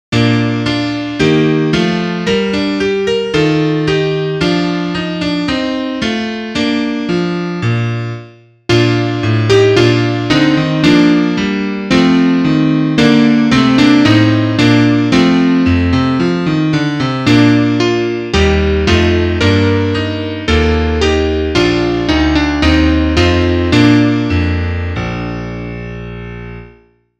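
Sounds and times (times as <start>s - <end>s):
piano: 0.1s - 27.1s.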